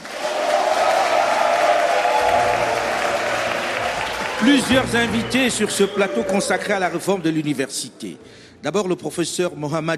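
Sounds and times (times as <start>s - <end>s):
faint cheers: 0.0s - 7.4s
large live audience applauding: 0.0s - 7.7s
speech: 4.4s - 9.9s.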